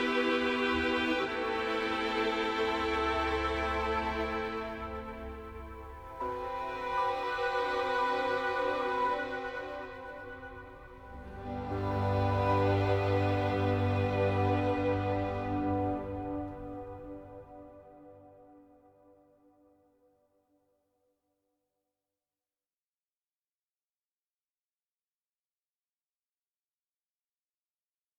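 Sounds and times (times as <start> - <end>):
ambient music: 0.0 - 19.8.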